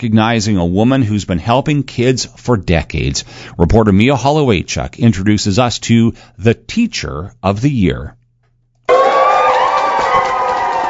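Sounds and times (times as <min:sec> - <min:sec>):
speech: 0:00.0 - 0:08.2
parents and students cheering and whooping for a teacher: 0:08.9 - 0:10.8.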